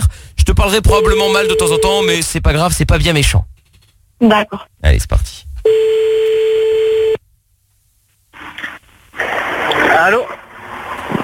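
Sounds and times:
speech: 0.6 - 3.5, 4.2 - 5.9, 10.0 - 10.4
telephone line tone as a call is placed: 1.0 - 2.0, 5.7 - 7.2.

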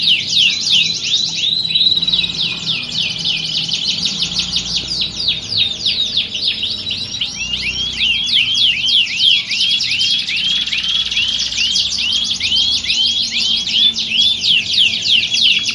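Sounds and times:
Belgian canary singing warm-up contest song: 0.0 - 15.7.

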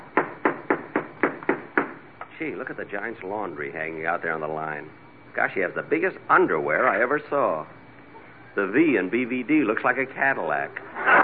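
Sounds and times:
knocking on a door: 0.1 - 2.0
speech: 2.4 - 7.8, 8.6 - 11.1.

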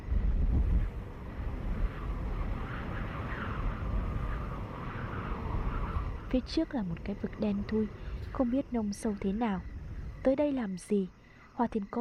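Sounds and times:
cold wind howling: 0.0 - 11.9
speech: 6.3 - 11.9.

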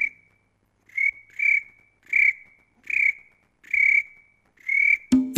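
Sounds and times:
cricket chirping: 0.0 - 5.2.

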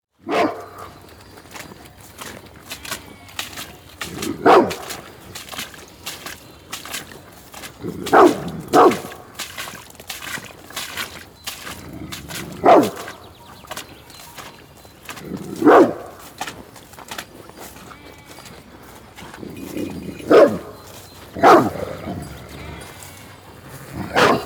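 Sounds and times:
faint outdoor background sounds: 0.1 - 24.4
dog barking deeply: 0.2 - 1.7, 2.8 - 7.0, 7.6 - 10.4, 11.6 - 13.2, 15.4 - 16.5, 19.8 - 22.4, 24.0 - 24.4.

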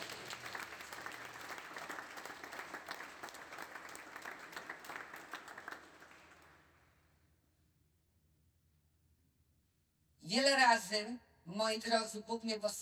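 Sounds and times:
audience at a sermon applauding: 0.0 - 6.8
speech: 10.3 - 12.8.

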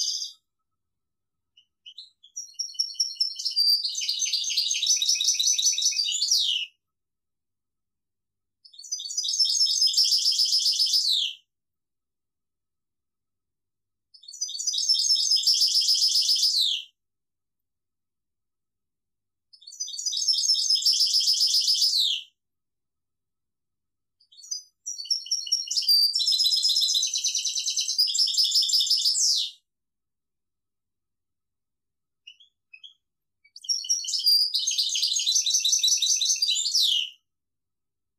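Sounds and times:
European goldfinch twittering song: 0.0 - 0.4, 1.6 - 6.7, 8.6 - 11.4, 14.2 - 16.9, 19.6 - 22.3, 24.2 - 29.6, 32.2 - 37.2.

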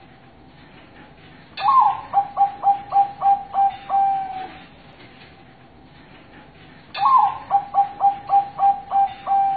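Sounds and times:
zebra dove cooing master song: 1.6 - 4.7, 7.0 - 9.5.

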